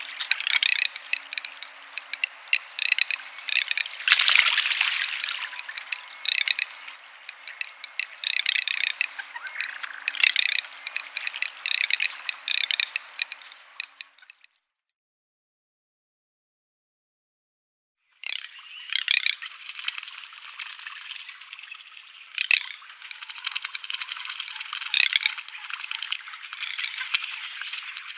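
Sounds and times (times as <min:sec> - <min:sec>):
garganey rattle: 0:00.0 - 0:14.5, 0:22.4 - 0:28.1.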